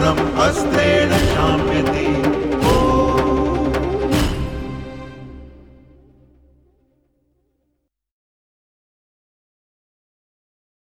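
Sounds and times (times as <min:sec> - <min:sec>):
person chanting a shloka: 0:00.0 - 0:06.0.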